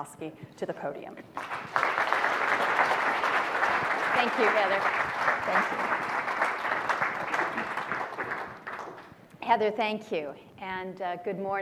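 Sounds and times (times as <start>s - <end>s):
speech: 0.0s - 1.9s, 4.2s - 6.0s, 9.5s - 11.6s
audience applause: 1.4s - 9.1s.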